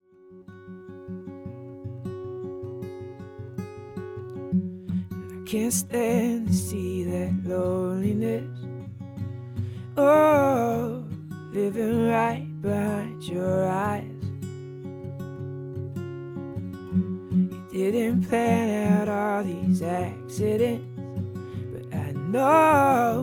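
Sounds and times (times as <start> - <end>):
acoustic singer-songwriter song: 0.0 - 23.2.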